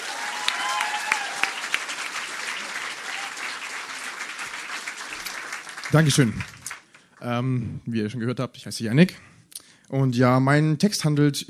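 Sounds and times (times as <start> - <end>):
audience applause: 0.0 - 7.2
speech: 5.9 - 6.6, 7.2 - 9.3, 9.9 - 11.4.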